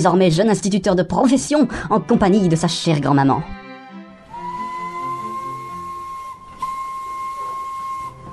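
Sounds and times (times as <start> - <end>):
speech: 0.0 - 3.6
train whistle at a village station platform: 4.3 - 8.3.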